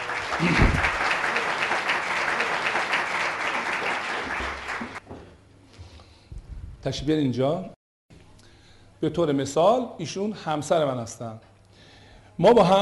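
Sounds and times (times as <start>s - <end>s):
audience applauding a female volunteer during a live talk about marriage: 0.0s - 5.0s
speech: 6.8s - 7.8s, 9.0s - 11.5s, 12.4s - 12.8s.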